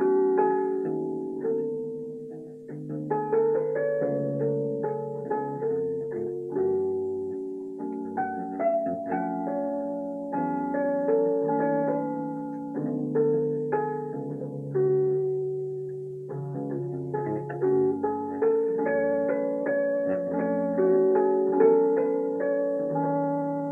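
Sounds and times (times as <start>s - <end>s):
piano: 0.0s - 23.7s.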